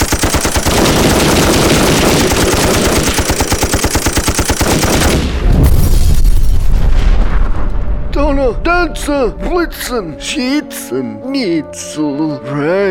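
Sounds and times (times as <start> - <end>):
machine gun fire: 0.0 - 5.5
heavy booming rumble: 5.2 - 10.4
speech: 8.8 - 12.9.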